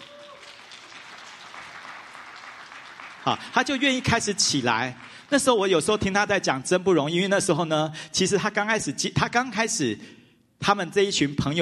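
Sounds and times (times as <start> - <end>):
audience clapping in welcome: 0.0 - 6.2
speech: 3.2 - 11.6.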